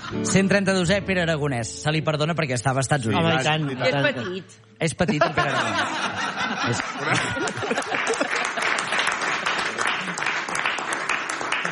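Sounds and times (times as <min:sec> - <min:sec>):
speech: 0:00.1 - 0:08.2
laughter: 0:03.3 - 0:10.8
applause: 0:06.7 - 0:11.7.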